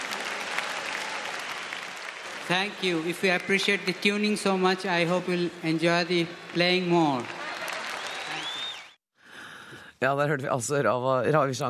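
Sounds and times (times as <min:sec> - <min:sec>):
concert audience applauding: 0:00.0 - 0:09.0
speech: 0:02.5 - 0:07.4, 0:10.0 - 0:11.6.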